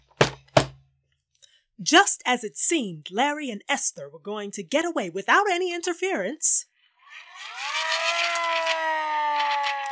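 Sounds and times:
speech: 0:01.8 - 0:06.7
police siren: 0:07.6 - 0:09.9.

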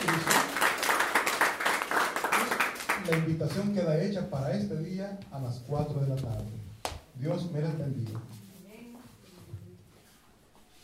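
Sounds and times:
audience applause: 0:00.0 - 0:03.3
speech: 0:03.1 - 0:08.4.

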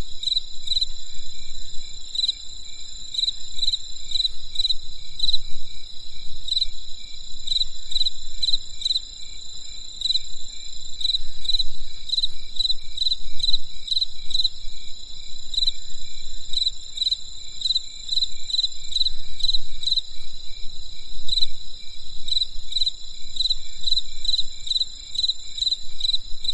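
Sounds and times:
insect chirps: 0:00.0 - 0:26.5.

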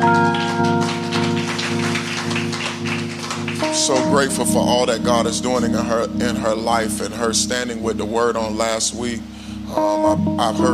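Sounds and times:
audience hand clapping: 0:00.0 - 0:05.3
speech: 0:03.9 - 0:10.7.

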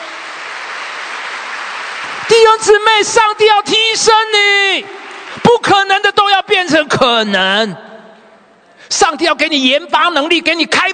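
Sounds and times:
crowd applauding: 0:00.0 - 0:03.1, 0:04.7 - 0:05.8
speech: 0:02.3 - 0:07.8, 0:08.9 - 0:10.9.

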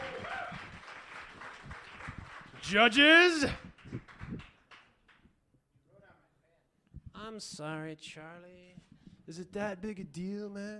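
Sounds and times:
audience round of applause: 0:00.0 - 0:05.2
speech: 0:02.7 - 0:03.7, 0:07.4 - 0:10.7.

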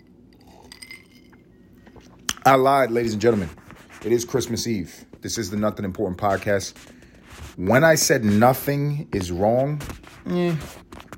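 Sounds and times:
glass clinking: 0:00.0 - 0:01.5
speech: 0:02.4 - 0:07.0, 0:07.6 - 0:10.8.

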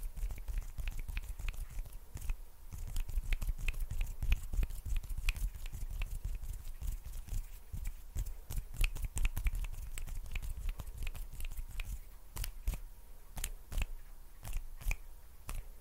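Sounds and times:
sticky hand sounds: 0:00.0 - 0:15.8.

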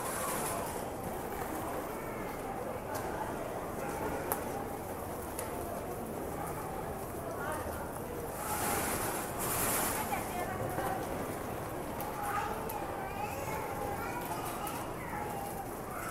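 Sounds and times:
people talking at a busy train station: 0:00.0 - 0:16.1.

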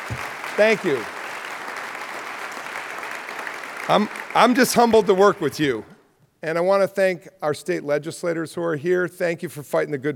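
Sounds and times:
round of applause: 0:00.0 - 0:05.9
speech: 0:00.1 - 0:01.2, 0:03.9 - 0:10.1.

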